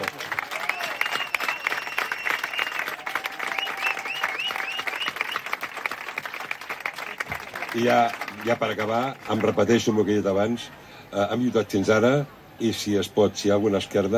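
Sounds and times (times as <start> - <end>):
loud crowd applause for the collaborators: 0.0 - 10.0
whistles from the crowd: 0.6 - 5.7
speech: 7.8 - 14.1.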